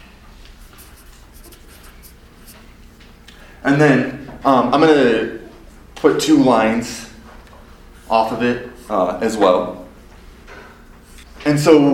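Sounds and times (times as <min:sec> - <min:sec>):
pen writing a name by hand on paper: 0:00.6 - 0:02.6
speech: 0:03.6 - 0:05.4, 0:06.0 - 0:07.1, 0:08.1 - 0:09.8, 0:11.4 - 0:11.9.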